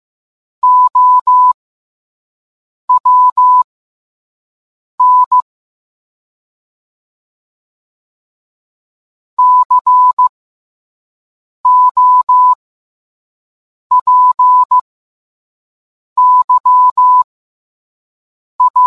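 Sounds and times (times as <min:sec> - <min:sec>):
morse code beeps: 0:00.6 - 0:01.6, 0:02.9 - 0:03.6, 0:05.0 - 0:05.4, 0:09.4 - 0:10.3, 0:11.7 - 0:12.6, 0:13.9 - 0:14.8, 0:16.2 - 0:17.3, 0:18.6 - 0:18.8.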